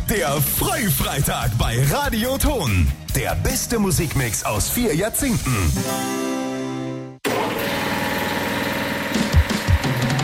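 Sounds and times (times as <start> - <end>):
speech: 0.1 - 6.3
new Renner air compressor running: 7.2 - 10.2.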